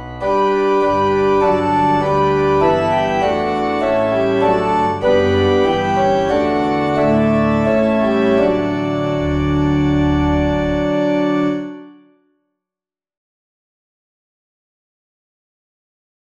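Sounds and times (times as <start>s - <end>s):
organ: 0.0s - 12.0s.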